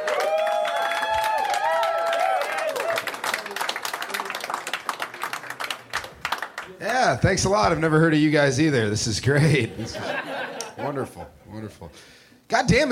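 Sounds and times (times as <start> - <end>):
crowd cheering and whooping: 0.0 - 4.4
audience applause: 0.0 - 7.2
speech: 7.0 - 10.2, 10.8 - 12.9
laughter: 9.3 - 11.9.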